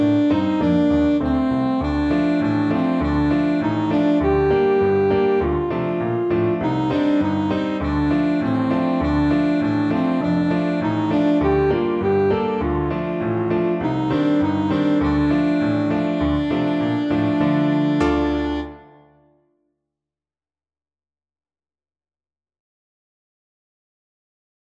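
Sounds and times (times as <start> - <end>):
alto saxophone: 0.0 - 19.1.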